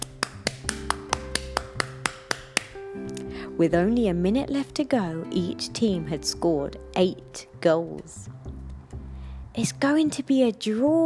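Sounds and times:
hands clapping: 0:00.0 - 0:02.9
speech: 0:03.6 - 0:08.4, 0:09.6 - 0:11.0.

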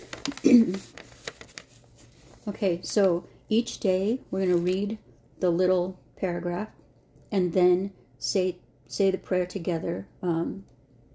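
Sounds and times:
paper rustling: 0:00.0 - 0:03.1, 0:04.4 - 0:05.0
speech: 0:00.5 - 0:01.0, 0:02.4 - 0:10.7.

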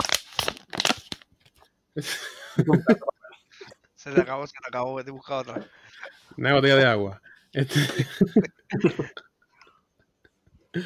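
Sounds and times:
cold beer being opened with crinkling cracks: 0:00.0 - 0:01.6
speech: 0:02.0 - 0:03.1, 0:04.0 - 0:09.3
people chuckling: 0:02.0 - 0:04.3, 0:07.6 - 0:09.2.

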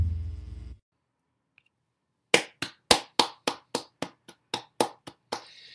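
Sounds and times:
hand clapping: 0:02.3 - 0:05.7.

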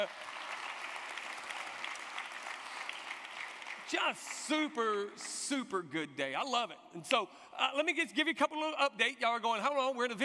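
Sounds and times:
speech: 0:00.0 - 0:00.3, 0:03.9 - 0:10.2
church congregation clapping for the worship team: 0:00.0 - 0:05.8.

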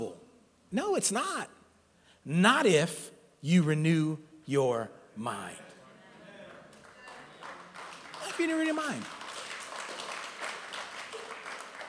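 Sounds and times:
speech: 0:00.0 - 0:01.6, 0:02.2 - 0:05.6, 0:08.4 - 0:09.2
hard hand clap from audience: 0:06.7 - 0:11.8.

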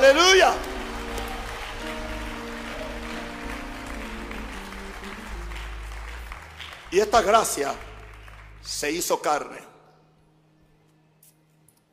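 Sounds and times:
audience applauding: 0:00.0 - 0:09.1
speech: 0:06.9 - 0:07.9, 0:08.6 - 0:09.7.

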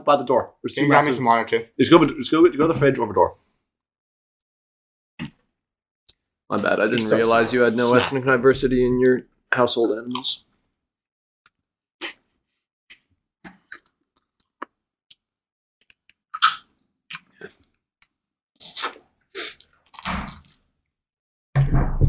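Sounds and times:
speech: 0:00.0 - 0:03.4, 0:06.5 - 0:10.5
chewing and crunching food: 0:12.9 - 0:15.2, 0:15.8 - 0:20.8.

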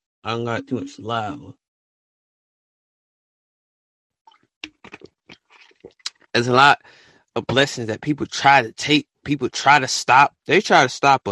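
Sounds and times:
speech: 0:00.2 - 0:01.6, 0:06.3 - 0:11.2
person drinking water in gulping sips: 0:04.3 - 0:06.3.

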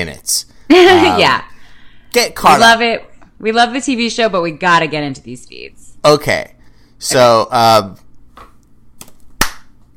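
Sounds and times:
speech: 0:00.0 - 0:01.5, 0:02.1 - 0:08.0
clapping sound effect marking spoilers: 0:09.0 - 0:09.7.

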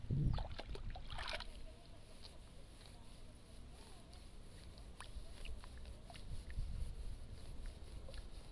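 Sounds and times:
sloshing and splashing in a flooded rice nursery bed: 0:00.3 - 0:01.6
sharp rustle of rice seedlings: 0:01.5 - 0:08.5.

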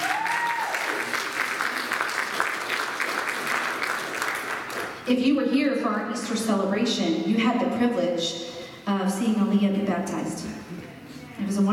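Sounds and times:
audience applause: 0:00.0 - 0:05.0
speech: 0:05.1 - 0:11.7.

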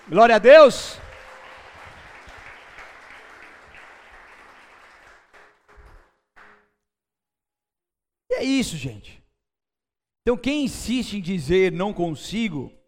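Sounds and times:
audience applause: 0:00.0 - 0:06.6
speech: 0:00.1 - 0:01.0, 0:08.5 - 0:09.2, 0:10.3 - 0:12.8.

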